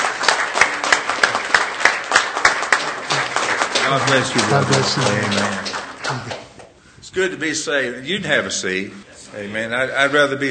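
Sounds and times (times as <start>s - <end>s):
church audience applauding: 0.0s - 6.7s
speech: 3.9s - 6.4s, 7.1s - 10.4s.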